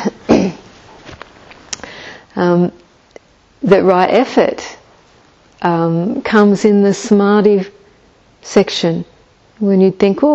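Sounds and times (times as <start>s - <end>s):
person clearing a niggly throat: 0.0s - 0.6s
speech: 2.4s - 2.9s, 3.6s - 4.8s, 5.6s - 7.8s, 8.4s - 10.3s.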